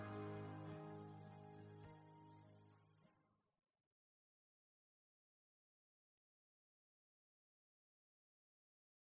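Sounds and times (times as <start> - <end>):
solo music breakdown: 0.0 - 1.8.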